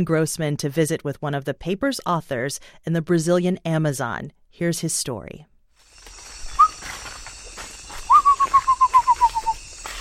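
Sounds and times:
speech: 0:00.0 - 0:05.5
buzzing insect chorus in the Amazon jungle: 0:05.8 - 0:09.9
bird singing in Amazon jungle: 0:06.2 - 0:07.0, 0:07.8 - 0:09.9.

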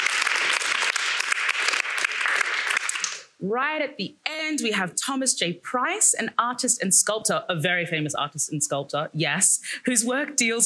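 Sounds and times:
crowd applauding: 0:00.0 - 0:03.3
speech: 0:03.4 - 0:10.6.

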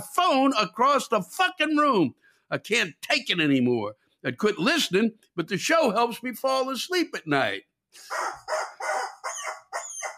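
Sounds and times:
speech: 0:00.0 - 0:08.6
rubber chicken toy squawking: 0:08.0 - 0:10.1.

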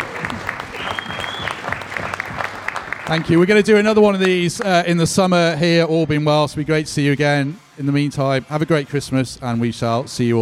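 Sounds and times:
audience applause at a live podcast event: 0:00.0 - 0:04.7
speech: 0:03.1 - 0:10.4.

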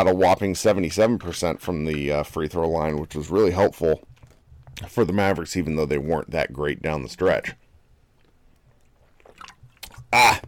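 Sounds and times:
speech: 0:00.0 - 0:04.1, 0:04.8 - 0:07.6, 0:10.1 - 0:10.4
person sipping water: 0:08.1 - 0:10.4.

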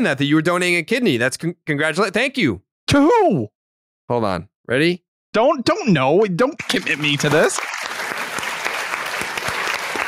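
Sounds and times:
speech: 0:00.0 - 0:07.8
crowd applauding: 0:06.6 - 0:10.0.

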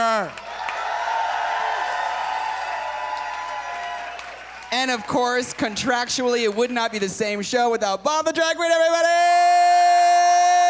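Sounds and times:
speech: 0:00.2 - 0:00.4, 0:04.8 - 0:09.6
audience applause: 0:00.4 - 0:06.8.

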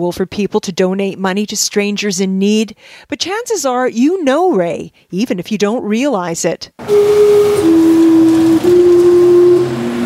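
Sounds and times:
speech: 0:00.0 - 0:08.0
steam clock whistle blowing: 0:06.8 - 0:10.0.

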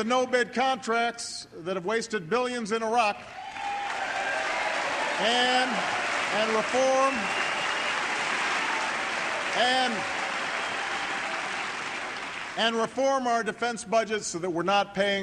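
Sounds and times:
speech: 0:00.0 - 0:03.5, 0:05.2 - 0:07.4, 0:09.6 - 0:10.2, 0:12.6 - 0:15.2
hesitant scattered applause at a political speech: 0:03.2 - 0:12.6.

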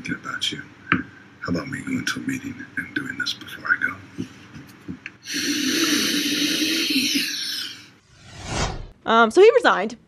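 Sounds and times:
speech: 0:00.0 - 0:04.4, 0:05.3 - 0:07.3, 0:09.0 - 0:10.0
person snorting lines of white powder: 0:05.2 - 0:07.9.

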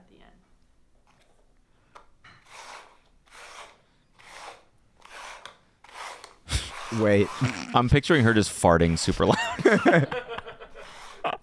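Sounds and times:
cups shuffled on a tabletop: 0:02.2 - 0:09.1
laughter: 0:06.5 - 0:11.4
speech: 0:06.9 - 0:10.3.

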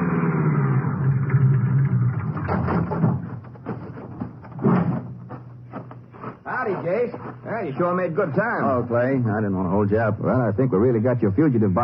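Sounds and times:
car pulling up and stopping: 0:00.0 - 0:06.0
speech: 0:06.9 - 0:11.8.

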